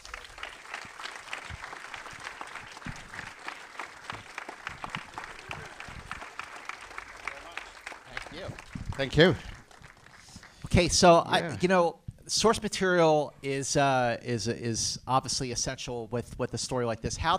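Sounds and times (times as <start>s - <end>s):
audience applause welcoming a guest onto the stage: 0.0s - 11.1s
speech: 8.4s - 9.5s, 10.8s - 17.3s.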